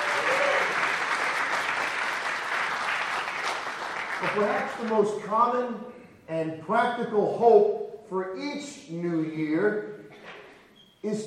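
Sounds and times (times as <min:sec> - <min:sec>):
audience clapping: 0:00.0 - 0:05.2
speech: 0:04.2 - 0:09.9, 0:11.0 - 0:11.2.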